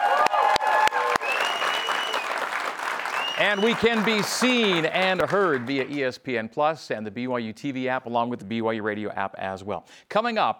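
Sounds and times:
live studio audience applauding at a weekly BYU men's basketball show: 0.0s - 6.1s
speech: 3.4s - 10.5s.

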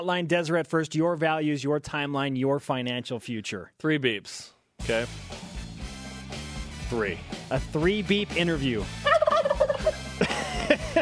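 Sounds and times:
speech: 0.0s - 5.5s, 6.9s - 9.1s
turkey gobbling: 9.0s - 10.2s
laughter: 9.2s - 10.9s.

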